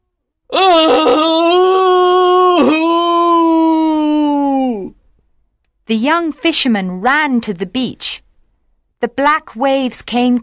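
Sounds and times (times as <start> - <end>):
speech: 0.5 - 1.4, 5.9 - 8.2, 9.0 - 10.4
terrible wailing cry from the sea: 0.5 - 5.0.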